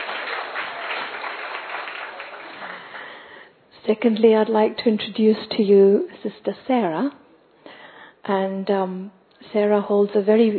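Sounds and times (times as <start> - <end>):
audience applause: 0.0 - 3.2
speech: 3.9 - 7.2, 8.3 - 10.5.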